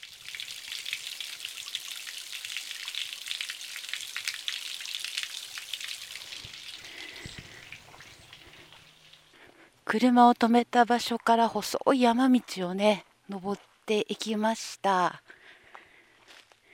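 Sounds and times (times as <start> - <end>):
spring water trickling: 0.0 - 9.4
speech: 9.9 - 15.2.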